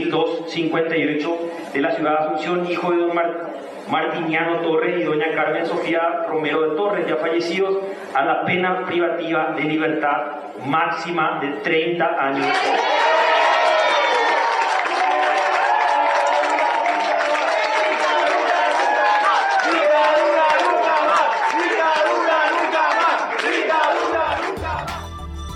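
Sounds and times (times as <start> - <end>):
speech: 0.1 - 13.0
crowd celebrating in a courtroom: 12.4 - 25.5.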